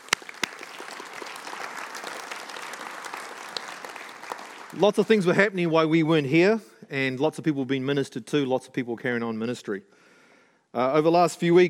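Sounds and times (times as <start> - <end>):
audience round of applause: 0.0 - 5.4
speech: 4.7 - 10.0, 10.7 - 11.6.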